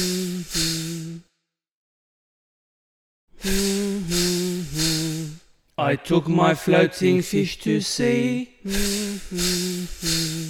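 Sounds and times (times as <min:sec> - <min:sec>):
air hissing out of a punctured inflatable: 0:00.0 - 0:01.2, 0:03.4 - 0:05.4, 0:08.7 - 0:10.4
speech: 0:05.8 - 0:10.4.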